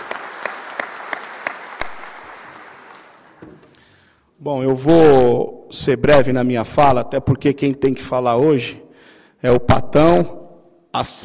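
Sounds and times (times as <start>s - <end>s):
crowd applauding: 0.0s - 3.4s
speech: 4.4s - 8.8s, 9.4s - 11.2s.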